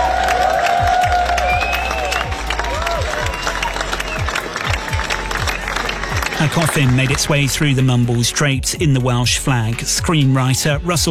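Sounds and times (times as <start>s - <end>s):
cheers and whoops: 0.0s - 6.4s
crowd bursting into applause: 0.0s - 8.7s
low regular thumps: 0.0s - 11.0s
speech: 6.4s - 11.0s.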